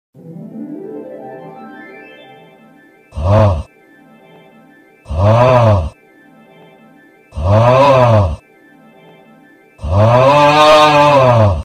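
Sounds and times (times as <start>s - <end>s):
person groaning augh: 3.2s - 3.7s, 5.1s - 6.0s, 7.4s - 8.4s, 9.8s - 11.6s
zoom sound effect: 3.2s - 3.7s, 5.1s - 6.0s, 7.4s - 8.4s, 9.8s - 11.6s.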